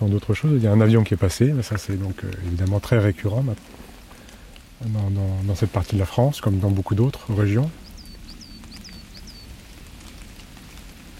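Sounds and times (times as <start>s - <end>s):
speech: 0.0s - 3.8s, 4.8s - 7.8s
water dripping from trees after rain: 0.0s - 11.1s
thin high bird chirps: 7.8s - 9.6s.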